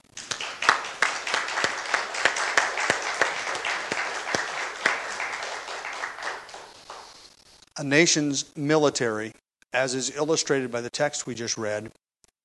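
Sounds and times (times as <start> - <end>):
crowd applauding: 0.0 - 7.2
speech: 7.8 - 12.0.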